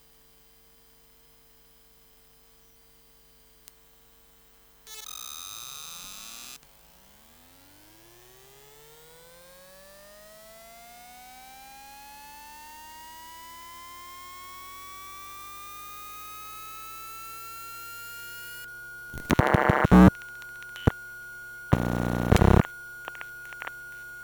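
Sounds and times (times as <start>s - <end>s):
Synology DS216j network storage device booting: 19.2s - 20.1s, 21.8s - 23.7s.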